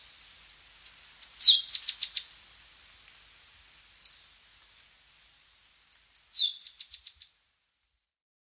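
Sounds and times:
tepui brush finch song: 0:00.8 - 0:02.5, 0:04.0 - 0:04.7, 0:05.9 - 0:07.4.

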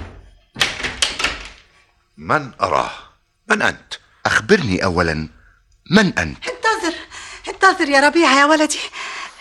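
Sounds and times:
door opening: 0:00.5 - 0:01.7
speech: 0:02.3 - 0:06.5, 0:07.6 - 0:09.0.

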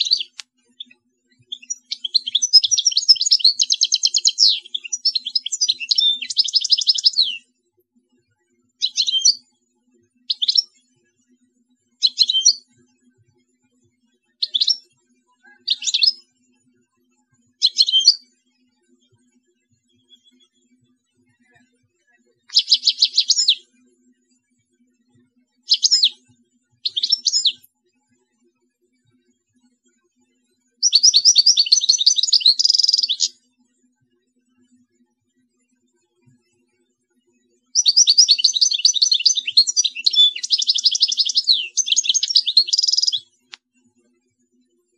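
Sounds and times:
European goldfinch twittering song: 0:00.0 - 0:00.9, 0:01.5 - 0:07.4, 0:08.8 - 0:09.4, 0:10.3 - 0:10.6, 0:12.0 - 0:12.6, 0:14.4 - 0:14.8, 0:15.6 - 0:16.2, 0:17.6 - 0:18.2, 0:22.5 - 0:23.6, 0:25.7 - 0:26.2, 0:26.8 - 0:27.7, 0:30.8 - 0:33.3, 0:37.8 - 0:43.2.

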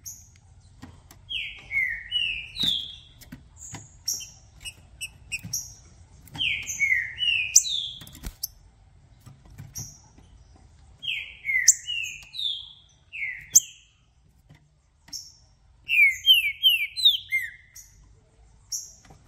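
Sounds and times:
green-winged saltator song: 0:01.3 - 0:08.5, 0:11.0 - 0:13.9, 0:15.9 - 0:18.0.

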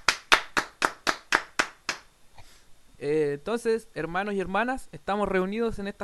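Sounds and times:
hands clapping: 0:00.0 - 0:02.1
speech: 0:03.0 - 0:06.0.

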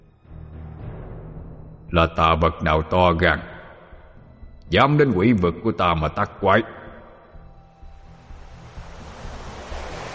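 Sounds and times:
speech: 0:01.9 - 0:03.5, 0:04.7 - 0:06.8
surging lake waves: 0:08.3 - 0:10.1.

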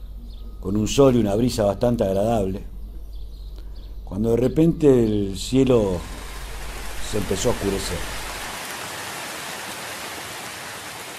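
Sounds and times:
speech: 0:00.6 - 0:02.7, 0:04.1 - 0:06.2, 0:07.1 - 0:08.2
heavy rain: 0:06.0 - 0:11.1.

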